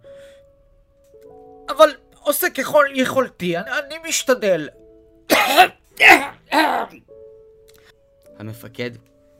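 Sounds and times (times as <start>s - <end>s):
speech: 1.8s - 4.8s, 5.5s - 7.1s, 8.4s - 9.1s
soldier with a cold coughing: 5.3s - 7.0s.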